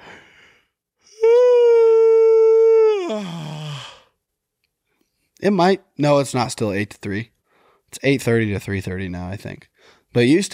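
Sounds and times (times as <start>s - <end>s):
person yawning: 1.1s - 4.2s
speech: 5.4s - 7.3s, 7.9s - 10.5s.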